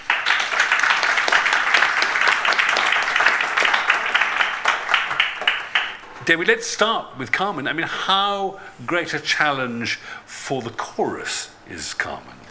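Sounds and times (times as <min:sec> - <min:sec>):
audience applause welcoming an opera company's chorus manager at a talk: 0:00.0 - 0:06.6
speech: 0:06.3 - 0:12.4.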